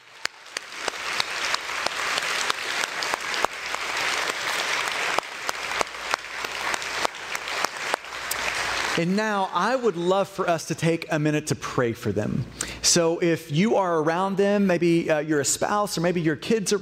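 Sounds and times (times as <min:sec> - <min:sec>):
crowd applauding: 0:00.0 - 0:10.1
speech: 0:09.0 - 0:16.8.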